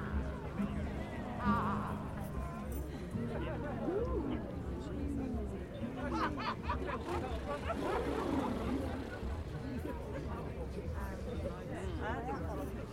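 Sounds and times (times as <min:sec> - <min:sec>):
crowd babble at Stonehenge for the solstice: 0:00.0 - 0:12.9
laughter: 0:05.9 - 0:10.7.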